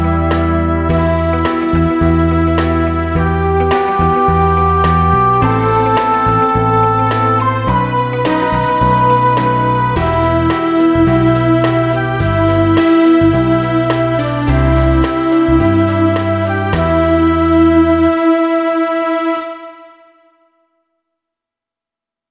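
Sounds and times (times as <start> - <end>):
classic pop ballad in E minor at 106 bpm: 0.0 - 19.6.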